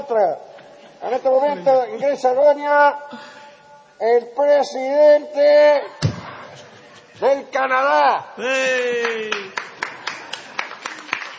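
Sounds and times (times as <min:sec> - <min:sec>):
speech: 0:00.0 - 0:03.4, 0:04.0 - 0:06.0, 0:06.6 - 0:09.6
audience applauding: 0:08.7 - 0:11.3.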